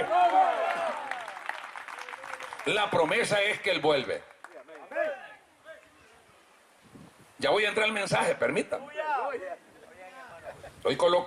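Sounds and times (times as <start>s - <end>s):
cheering voices: 0.0s - 2.5s
audience clapping: 0.0s - 5.0s
speech: 2.6s - 4.3s, 7.4s - 9.7s, 10.8s - 11.2s.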